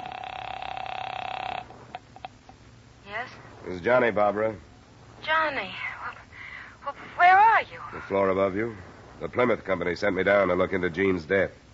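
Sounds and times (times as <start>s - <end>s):
telephone ringing: 0.0s - 2.4s
speech: 3.6s - 4.7s, 5.3s - 5.9s, 7.2s - 11.6s.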